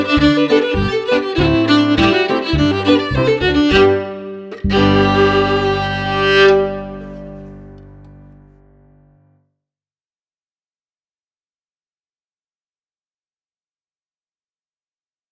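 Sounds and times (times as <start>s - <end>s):
fiddle: 0.0s - 8.4s
piano: 0.0s - 9.3s.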